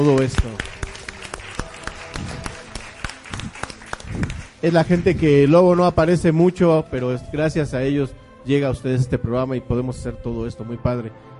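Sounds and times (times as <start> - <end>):
speech: 0.0 - 0.8, 4.6 - 11.3
children applauding loudly: 0.0 - 5.2.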